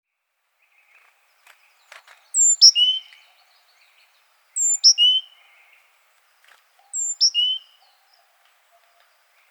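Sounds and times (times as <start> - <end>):
great tit Parus major calling: 1.6 - 5.9, 6.8 - 9.4.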